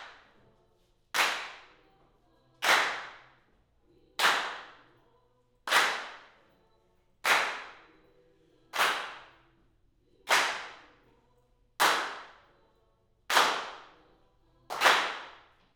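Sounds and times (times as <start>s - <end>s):
claps: 1.2s - 1.8s, 2.6s - 3.3s, 4.2s - 4.9s, 5.7s - 6.4s, 7.2s - 7.9s, 8.7s - 9.3s, 10.3s - 10.9s, 11.8s - 12.4s, 13.3s - 14.0s, 14.7s - 15.7s.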